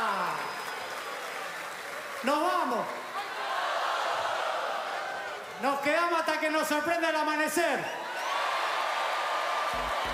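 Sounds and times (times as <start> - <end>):
audience applause: 0.0 - 5.6, 8.2 - 10.1
speech: 2.2 - 3.0, 5.6 - 8.0.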